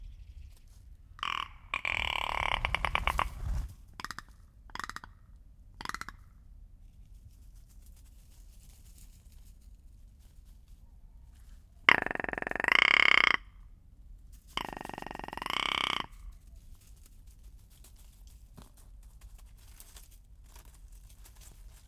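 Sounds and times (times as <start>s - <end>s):
rock ptarmigan croaking call: 1.2s - 3.7s, 11.9s - 13.5s, 14.6s - 16.2s.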